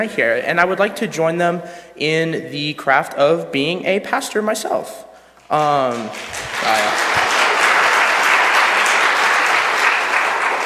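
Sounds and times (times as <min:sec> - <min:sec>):
speech: 0:00.0 - 0:07.2
audience applause: 0:05.6 - 0:10.6.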